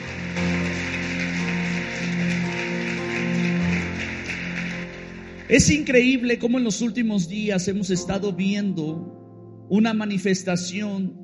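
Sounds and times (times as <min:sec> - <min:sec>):
audience applauding: 0:00.0 - 0:06.4
sustained keyboard chords: 0:00.0 - 0:11.2
speech: 0:05.5 - 0:11.2.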